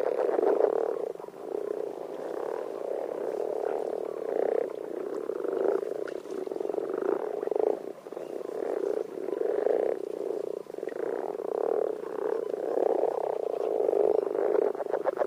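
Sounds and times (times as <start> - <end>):
common frog calling in France: 0.0 - 15.2.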